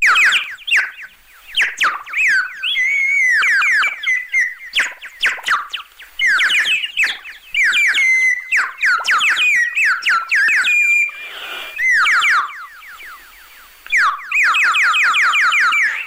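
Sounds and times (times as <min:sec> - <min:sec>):
short electronic music piece imitating birdsong: 0:00.0 - 0:11.2, 0:11.8 - 0:16.0.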